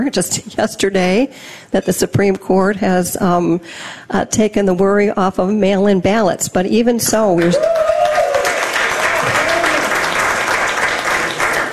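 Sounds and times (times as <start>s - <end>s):
speech: 0.0s - 7.8s
applause: 7.4s - 11.7s.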